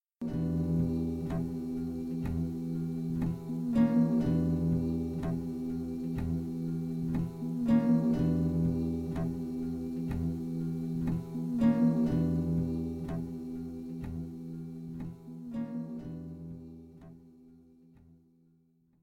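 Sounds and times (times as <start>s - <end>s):
music loop: 0.2s - 17.2s.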